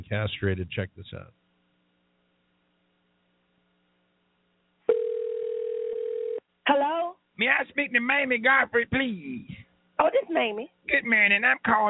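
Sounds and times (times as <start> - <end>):
speech: 0.1 - 1.4, 7.4 - 11.8
telephone dial tone: 4.9 - 6.4.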